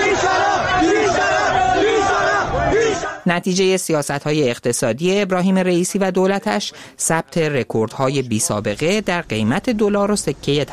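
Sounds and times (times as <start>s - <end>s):
dense continuous roar of many voices: 0.0s - 3.2s
large crowd chanting a rhythmic slogan in unison: 0.0s - 3.3s
speech: 3.2s - 10.7s.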